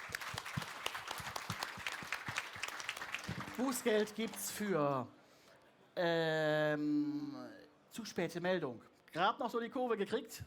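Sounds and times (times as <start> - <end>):
group applauding: 0.0 - 4.6
speech: 3.6 - 5.2, 6.0 - 10.4.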